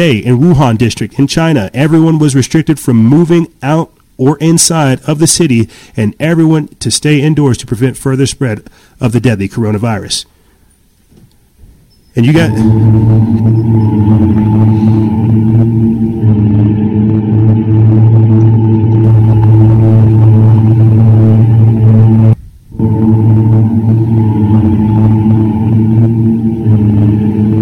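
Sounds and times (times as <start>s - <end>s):
speech: 0.0s - 10.3s, 12.2s - 16.7s
vehicle driving through the empty streets of Wuhan during the coronavirus lockdown: 12.2s - 27.6s.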